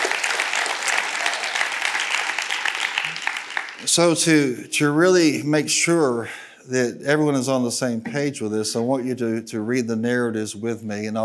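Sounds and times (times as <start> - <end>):
crowd applauding: 0.0 - 4.3
speech: 3.8 - 11.2.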